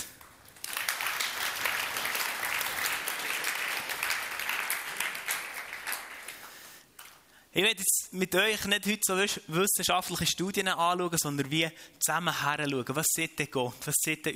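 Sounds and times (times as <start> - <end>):
audience applause: 0.0 - 6.7
speech: 7.6 - 14.3.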